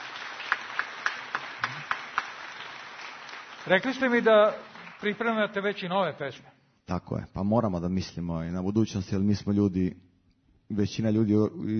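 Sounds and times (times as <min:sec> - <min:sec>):
clapping in a studio: 0:00.0 - 0:05.4
speech: 0:03.6 - 0:10.0, 0:10.7 - 0:11.7.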